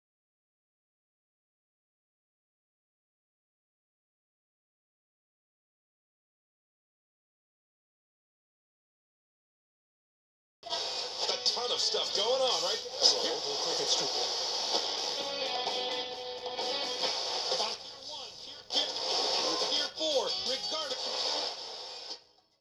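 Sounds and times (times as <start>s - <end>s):
radio static: 10.6s - 22.2s.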